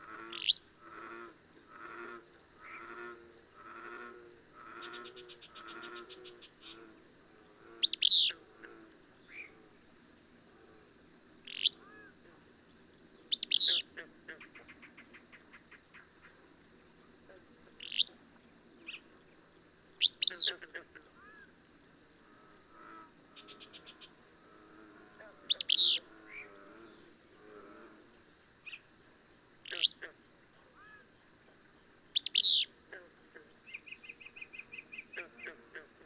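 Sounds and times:
continuous high whine: 0.0s - 36.0s
bird chirps: 13.3s - 13.8s, 20.0s - 20.5s, 25.5s - 26.0s, 32.2s - 32.7s.

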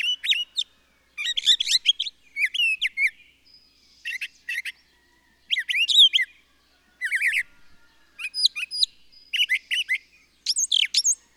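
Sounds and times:
bird song: 0.0s - 11.3s.

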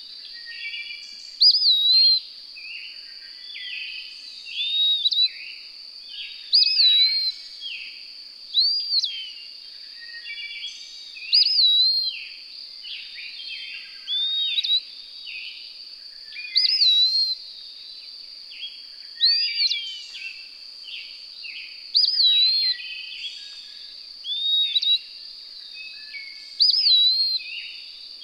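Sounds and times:
bird whistled song: 0.3s - 2.2s, 3.4s - 5.5s, 6.2s - 7.9s, 8.5s - 12.3s, 12.9s - 15.6s, 16.2s - 17.4s, 18.6s - 20.4s, 21.9s - 28.2s.

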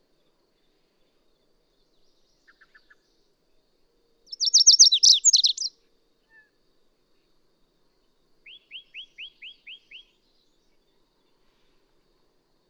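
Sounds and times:
bird song: 0.2s - 7.4s, 8.0s - 11.9s.

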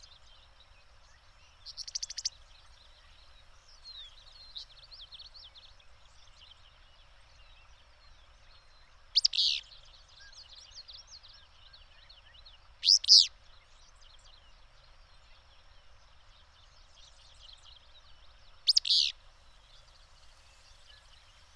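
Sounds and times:
bird song: 0.0s - 21.5s.

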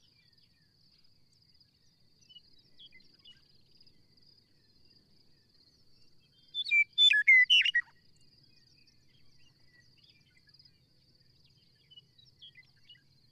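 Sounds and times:
bird singing chirps and trills: 6.6s - 7.8s.

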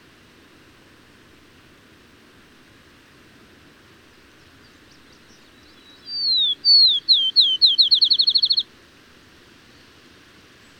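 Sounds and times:
bird whistling then trilling: 5.9s - 8.6s.

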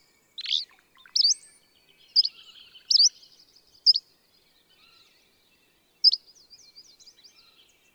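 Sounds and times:
bird song with trill, sharp slurred notes and high twittering: 0.0s - 7.9s.

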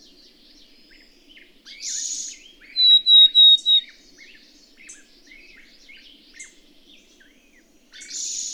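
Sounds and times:
other birds chattering softly: 0.0s - 8.5s
bird bright whistled notes: 2.8s - 3.8s.

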